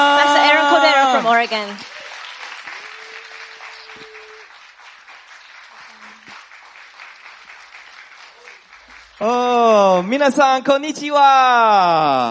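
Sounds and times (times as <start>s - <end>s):
audience applause: 0.0s - 10.6s
speech: 1.4s - 1.9s, 9.2s - 12.2s.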